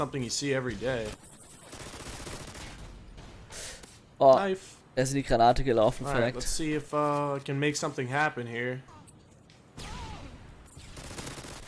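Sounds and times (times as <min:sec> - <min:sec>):
speech: 0:00.0 - 0:01.3, 0:04.2 - 0:08.9
mini Uzi automatic gunfire in a video game: 0:01.0 - 0:02.8, 0:10.8 - 0:11.6.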